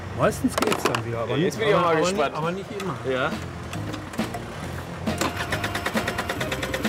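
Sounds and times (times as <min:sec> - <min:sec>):
speech: 0:00.2 - 0:03.6
scooter engine cranking without catching: 0:03.4 - 0:06.8.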